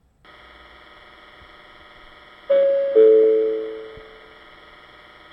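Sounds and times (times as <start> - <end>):
local train at Itoigawa station: 2.5 - 4.2.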